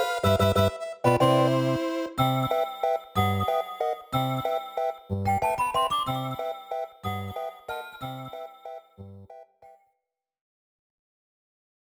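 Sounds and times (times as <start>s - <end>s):
underwater SNES game background music: 0.0s - 9.4s.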